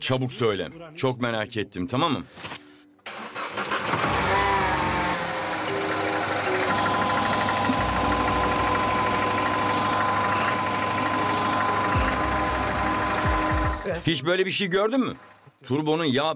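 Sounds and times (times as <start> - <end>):
speech: 0.0 - 2.6, 13.9 - 16.3
car engine cranking and idling: 3.1 - 14.2, 15.0 - 15.6
faint high whine: 4.3 - 14.0.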